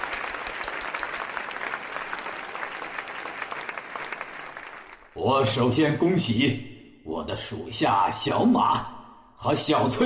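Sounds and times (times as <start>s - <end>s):
enthusiastic applause from a wedding crowd: 0.0s - 5.2s
speech: 5.2s - 10.0s.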